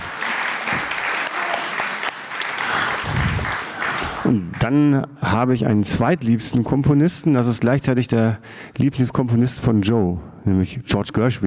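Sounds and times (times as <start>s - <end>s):
audience applause: 0.0s - 4.6s
speech: 4.3s - 11.4s.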